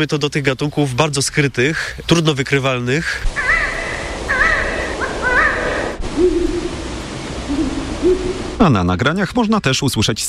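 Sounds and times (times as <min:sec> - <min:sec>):
speech: 0:00.0 - 0:03.5, 0:08.6 - 0:10.2
hiss: 0:00.0 - 0:10.2
owl hooting: 0:03.2 - 0:08.6
owl screeching: 0:03.3 - 0:06.8.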